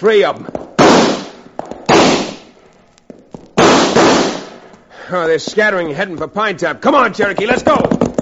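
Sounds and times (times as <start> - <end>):
speech: 0.0 - 0.6, 5.1 - 8.1
gunshots in a radio western drama shootout among rocks: 0.8 - 2.5, 3.6 - 4.6.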